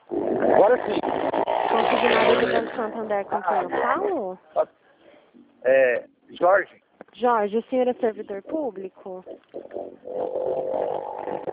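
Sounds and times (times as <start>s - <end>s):
speech: 0.5s - 1.4s, 2.0s - 4.9s, 5.6s - 11.5s
motorcycle passing: 0.6s - 4.2s, 9.8s - 11.5s.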